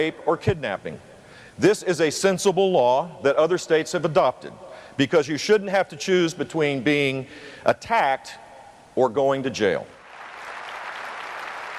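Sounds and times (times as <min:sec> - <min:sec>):
speech: 0:00.0 - 0:08.4, 0:09.0 - 0:10.0
NRA crowd cheering and applauding: 0:10.0 - 0:11.7.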